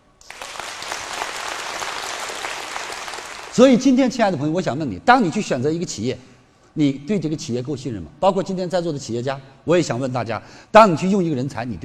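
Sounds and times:
audience applause: 0.2 - 3.6
speech: 3.6 - 11.8.

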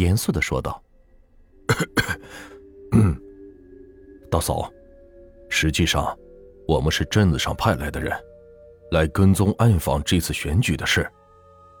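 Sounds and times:
speech: 0.0 - 0.9, 1.8 - 3.2, 4.3 - 4.8, 5.5 - 8.3, 8.9 - 11.2
person coughing: 1.7 - 3.3.

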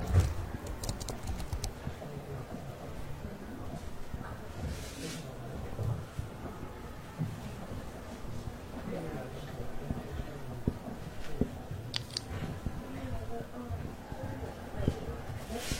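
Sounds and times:
typing on a keyboard: 0.0 - 1.8, 11.9 - 12.3
low steady murmur of voices in a library: 0.0 - 15.7
soft rustle: 4.6 - 5.4, 15.4 - 15.7.

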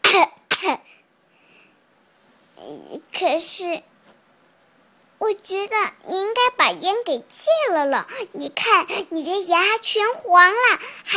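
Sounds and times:
coughing: 0.0 - 1.0
speech: 3.2 - 3.9, 5.2 - 11.1.

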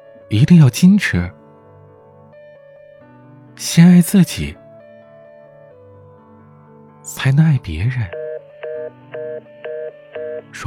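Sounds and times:
speech: 0.3 - 1.4, 3.7 - 4.6, 7.2 - 8.2
telephone hang-up tone beeps: 8.1 - 10.5.

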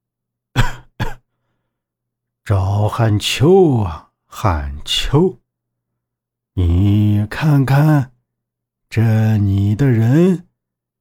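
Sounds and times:
boss character coughing to clear his voice: 0.5 - 1.3
speech: 2.5 - 5.4, 6.6 - 8.1, 8.9 - 10.5.

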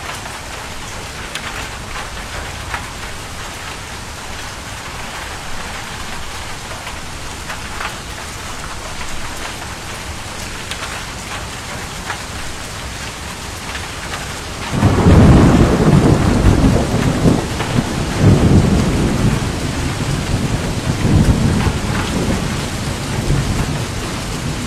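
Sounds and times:
downpour of heavy rain: 0.0 - 24.6
loud deep rumble of thunder: 1.0 - 10.2, 14.4 - 24.6.

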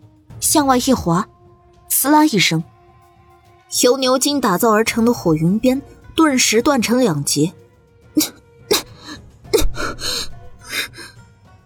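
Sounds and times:
speech: 0.4 - 1.3, 2.0 - 2.7, 3.7 - 7.6, 8.2 - 8.4
person coughing in an audio drama: 8.2 - 11.1
rough breathy exhalations: 8.2 - 11.2.

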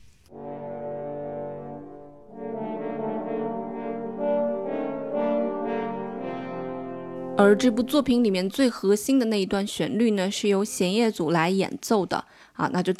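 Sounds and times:
French horn playing: 0.3 - 9.6
speech: 7.4 - 12.9.

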